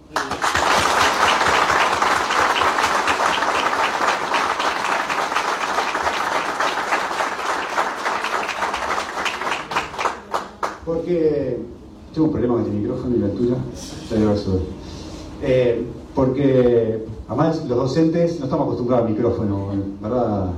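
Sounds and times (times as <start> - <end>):
audience applause: 0.0 - 10.8
speech: 11.1 - 14.8, 15.4 - 20.5.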